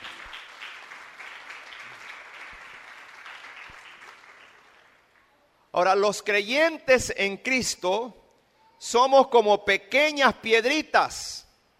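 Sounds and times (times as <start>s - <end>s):
audience applauding: 0.0s - 5.3s
speech: 5.8s - 8.2s, 8.8s - 11.4s.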